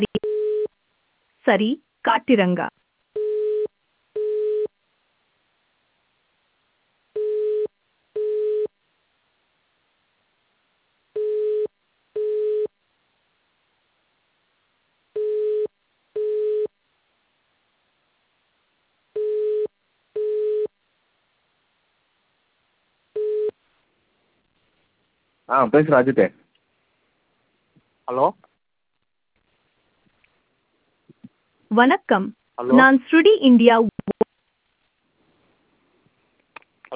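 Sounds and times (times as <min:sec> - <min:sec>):
telephone on-hold tone of paired short mid-pitched beeps: 0:00.0 - 0:00.7, 0:03.2 - 0:04.7, 0:07.2 - 0:08.7, 0:11.2 - 0:12.7, 0:15.2 - 0:16.7, 0:19.2 - 0:20.7, 0:23.2 - 0:23.6
speech: 0:01.5 - 0:02.7, 0:25.6 - 0:26.4, 0:28.1 - 0:28.5, 0:31.7 - 0:33.9.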